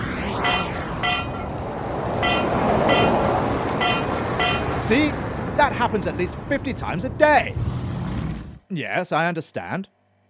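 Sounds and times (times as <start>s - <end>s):
steady rush of traffic: 0.0s - 8.2s
wind noise: 0.2s - 6.5s
car rolling over a loose broken manhole cover: 2.2s - 5.5s
speech: 4.9s - 7.7s, 8.7s - 9.9s.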